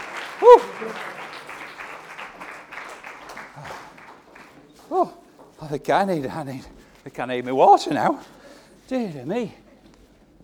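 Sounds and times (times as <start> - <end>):
audience applauding: 0.0 - 5.2
speech: 0.4 - 1.2, 5.0 - 9.6.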